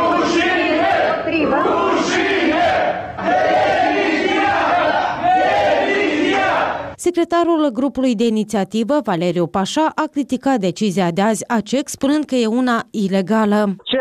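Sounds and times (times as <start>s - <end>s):
large crowd shouting and chanting: 0.0s - 7.0s
speech: 7.0s - 13.9s.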